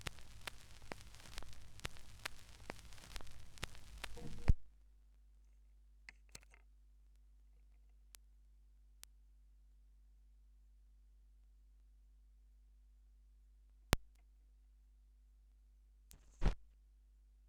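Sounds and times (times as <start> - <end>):
vinyl record noise: 0.0 - 4.8, 16.1 - 16.6.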